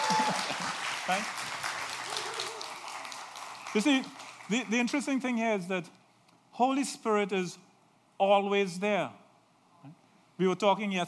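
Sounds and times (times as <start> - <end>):
audience applause: 0.0 - 4.9
speech: 0.1 - 1.5, 3.7 - 6.0, 6.6 - 7.6, 8.2 - 9.2, 9.8 - 11.0.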